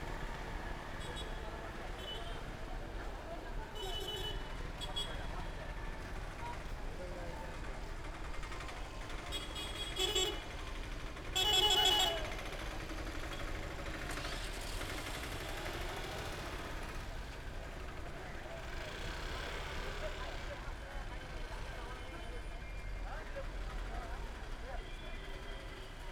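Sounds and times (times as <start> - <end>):
morning traffic in Kerala India: 0.0 - 26.0.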